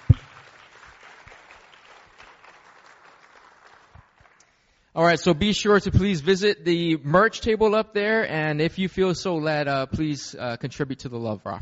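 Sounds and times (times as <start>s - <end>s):
audience applause: 0.0s - 4.4s
speech: 5.0s - 11.6s.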